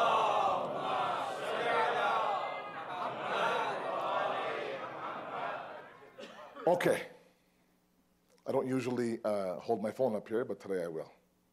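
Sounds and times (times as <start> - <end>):
audience loudly chanting salawat in unison: 0.0 - 6.4
speech: 6.6 - 7.1, 8.5 - 11.2.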